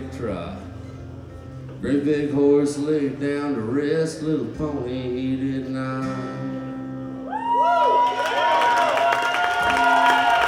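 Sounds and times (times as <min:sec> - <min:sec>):
speech: 0:00.2 - 0:00.7, 0:01.8 - 0:06.6
audience yelling and cheering after song: 0:07.3 - 0:10.4.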